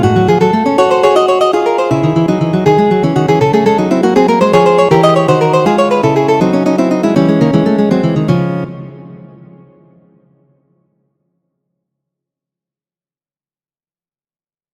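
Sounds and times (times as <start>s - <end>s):
fugue: 0.3s - 8.3s.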